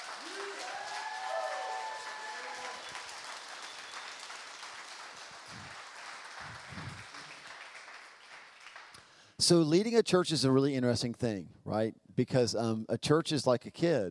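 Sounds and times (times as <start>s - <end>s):
audience clapping and cheering: 0.0s - 9.2s
speech: 9.4s - 14.0s.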